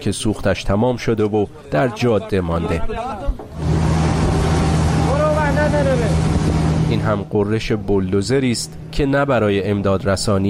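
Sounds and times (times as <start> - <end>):
speech: 0.0 - 3.7, 6.9 - 10.4
fuel tanker truck engine droning: 3.6 - 10.4.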